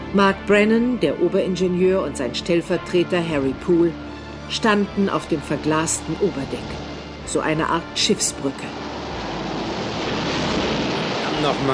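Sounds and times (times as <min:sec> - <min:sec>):
speech: 0:00.1 - 0:08.9, 0:11.4 - 0:11.7
crashing sea waves: 0:04.7 - 0:11.7
storm wind: 0:05.3 - 0:11.7.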